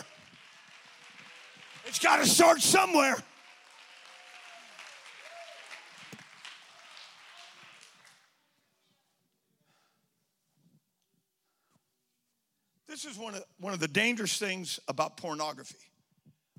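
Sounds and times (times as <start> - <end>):
crowd audience clapping hands: 0.0 - 8.5
speech: 1.9 - 3.3, 13.0 - 15.9.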